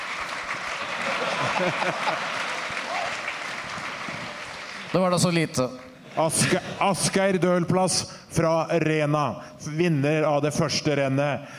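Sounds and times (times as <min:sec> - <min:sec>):
applause: 0:00.0 - 0:06.5
laughter: 0:00.7 - 0:03.2, 0:06.0 - 0:07.3
speech: 0:01.6 - 0:02.4, 0:04.9 - 0:11.5.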